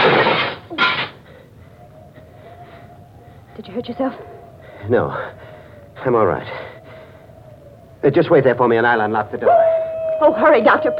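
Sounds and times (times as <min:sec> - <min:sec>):
window glass being broken: 0:00.0 - 0:01.2
speech: 0:03.6 - 0:06.7, 0:08.0 - 0:09.6, 0:10.2 - 0:10.9.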